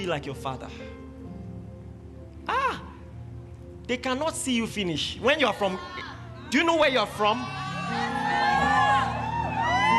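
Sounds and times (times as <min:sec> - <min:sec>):
speech: 0:00.0 - 0:01.0, 0:03.9 - 0:08.1
quiet audience cheering with many voices whooping and calling: 0:06.9 - 0:09.9.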